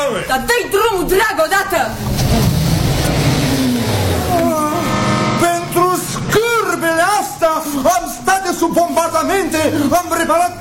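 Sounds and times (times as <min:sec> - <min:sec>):
speech: 0:00.2 - 0:02.3, 0:07.8 - 0:10.5
car starting and pulling away: 0:01.9 - 0:07.0.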